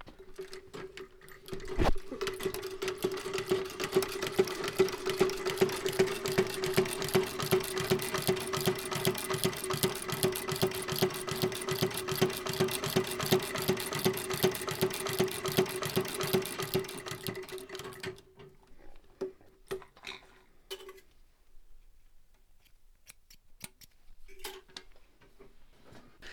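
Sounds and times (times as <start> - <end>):
foot-treadle shoemaker's sewing machine running: 1.4 - 18.3.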